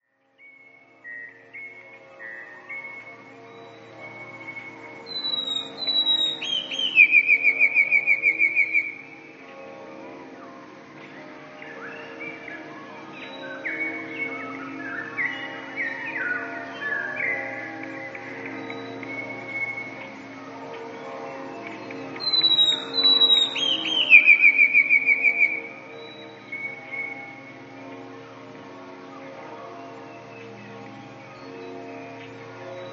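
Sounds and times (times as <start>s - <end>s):
Eurasian blue tit song trill: 0.3s - 32.9s.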